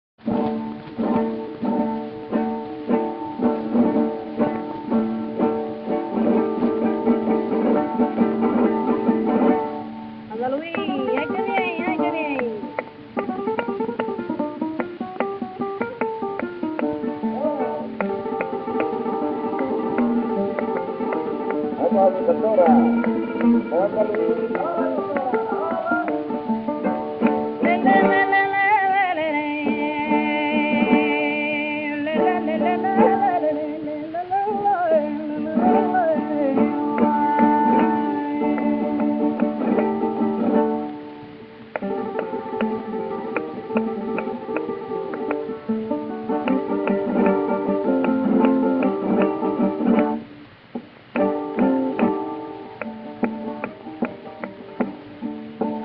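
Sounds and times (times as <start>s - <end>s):
solea flamenco music: 0.2s - 55.8s.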